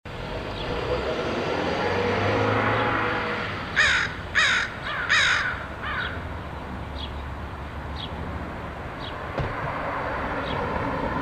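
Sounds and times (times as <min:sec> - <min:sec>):
vehicle passing: 0:00.1 - 0:11.2
crow cawing: 0:03.8 - 0:06.2.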